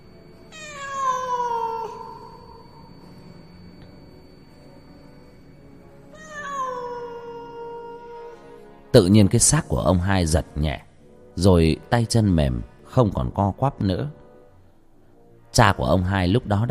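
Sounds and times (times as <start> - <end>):
cat yowling loudly: 0.5 - 2.5, 6.2 - 8.4
speech: 9.0 - 14.2, 15.6 - 16.6.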